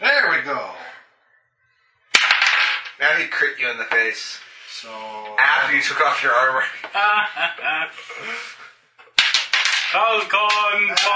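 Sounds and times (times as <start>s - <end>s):
die clattering across a table during a tabletop role-playing game: 2.2s - 3.0s, 9.1s - 11.1s
speech: 3.1s - 8.7s, 9.9s - 11.1s
laughter: 5.4s - 8.7s.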